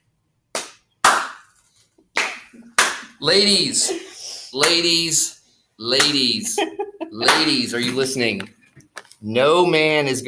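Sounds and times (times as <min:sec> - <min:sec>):
slow clap: 0:00.5 - 0:03.2, 0:07.2 - 0:08.5
speech: 0:02.5 - 0:08.6, 0:09.2 - 0:10.2
laughter: 0:06.2 - 0:08.2.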